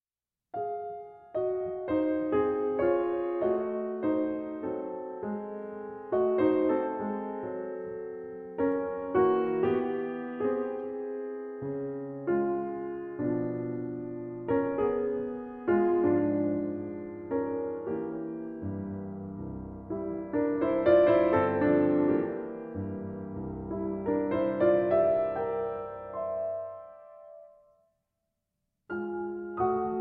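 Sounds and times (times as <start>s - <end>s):
piano etude in sixths: 0.6s - 27.8s, 28.9s - 29.9s.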